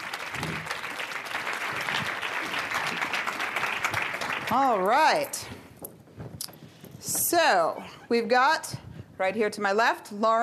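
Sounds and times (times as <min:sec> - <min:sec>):
audience applause for panelists: 0:00.0 - 0:05.0
speech: 0:04.5 - 0:05.6, 0:07.3 - 0:10.4.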